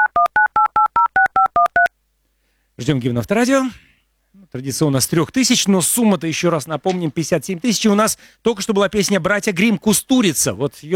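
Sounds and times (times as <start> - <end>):
telephone keypad dual-tone dialing beeps as a call is placed: 0.0 - 1.9
speech: 2.8 - 3.9, 4.5 - 10.9.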